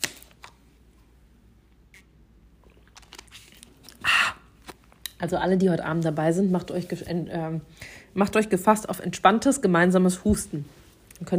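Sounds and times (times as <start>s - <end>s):
person taking a sip of a drink: 1.9s - 5.2s
speech: 5.2s - 11.3s.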